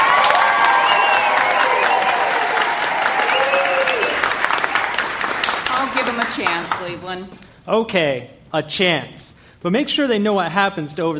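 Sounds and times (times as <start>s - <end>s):
audience applauding and cheering: 0.0s - 7.0s
speech: 6.4s - 11.1s.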